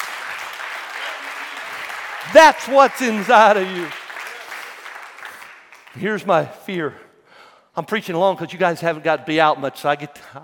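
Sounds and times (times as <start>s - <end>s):
audience clapping hands: 0.0s - 6.5s
speech: 2.2s - 4.0s, 6.0s - 7.0s, 7.8s - 10.4s.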